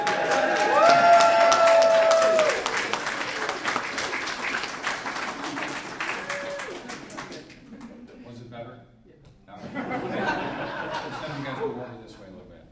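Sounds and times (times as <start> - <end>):
crowd cheering: 0.0 - 7.7
audience applause: 0.0 - 8.0
laughter: 9.6 - 12.2.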